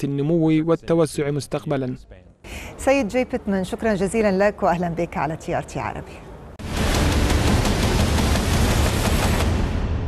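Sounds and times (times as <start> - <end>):
speech: 0.0 - 6.3
rapid gunfire: 6.6 - 9.9.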